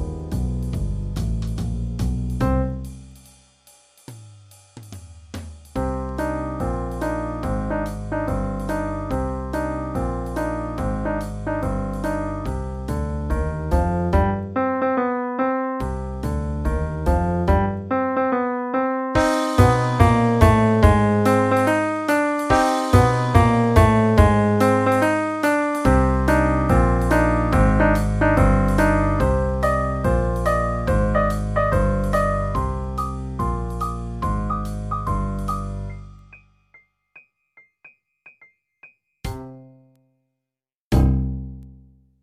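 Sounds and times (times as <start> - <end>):
boogie music: 0.0 - 3.1, 5.7 - 36.4, 39.2 - 39.8, 40.9 - 41.6
bass: 0.0 - 3.4, 5.5 - 15.1, 15.7 - 18.4, 19.2 - 36.4, 40.9 - 42.2
drums: 0.0 - 14.4, 15.8 - 17.7, 19.2 - 35.9.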